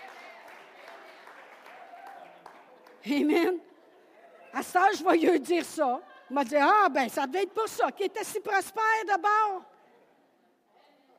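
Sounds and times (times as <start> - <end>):
crowd applause: 0.0 - 3.4
speech: 3.0 - 3.7, 4.5 - 9.7.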